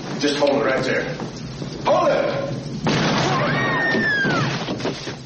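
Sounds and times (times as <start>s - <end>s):
speech: 0.2s - 2.6s
gunshot fired at an unarmed man: 2.8s - 5.2s.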